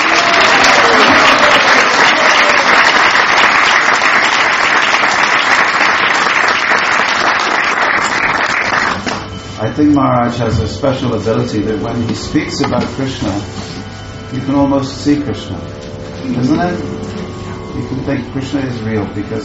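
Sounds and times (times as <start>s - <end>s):
loud round of applause: 0.0s - 9.3s
speech: 9.8s - 13.7s, 14.3s - 17.0s, 17.8s - 19.4s.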